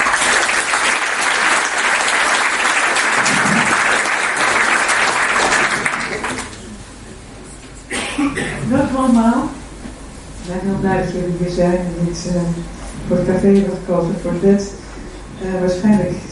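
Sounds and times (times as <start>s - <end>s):
audience applause for a panel: 0.0s - 6.8s
speech: 8.9s - 9.6s, 10.5s - 14.8s, 15.4s - 16.3s.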